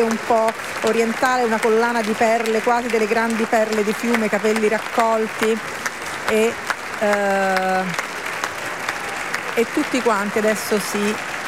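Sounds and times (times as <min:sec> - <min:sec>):
speech: 0:00.0 - 0:08.1, 0:09.6 - 0:11.3
theatre audience applauding the actors' curtain call: 0:00.0 - 0:11.4.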